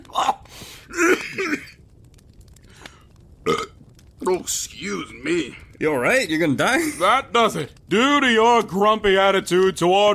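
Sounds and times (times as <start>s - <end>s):
person coughing after a drink of Fireball went down the wrong pipe: 0.9s - 1.8s
speech: 4.3s - 10.1s.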